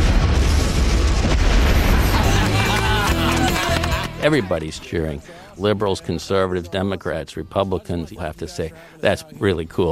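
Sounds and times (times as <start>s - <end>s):
garbage truck being blown up: 0.0s - 3.5s
laughter: 1.9s - 5.5s
speech: 4.2s - 9.9s.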